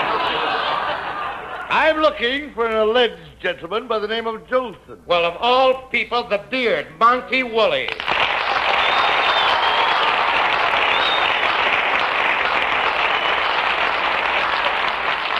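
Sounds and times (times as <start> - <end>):
laughter: 0.0 - 1.9
speech: 1.7 - 8.2
audience applause: 7.9 - 15.3.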